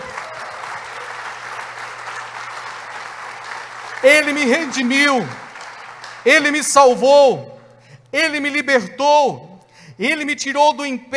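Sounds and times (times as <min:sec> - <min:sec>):
audience applause: 0:00.0 - 0:06.6
speech: 0:04.0 - 0:05.4, 0:06.2 - 0:07.5, 0:08.1 - 0:11.1.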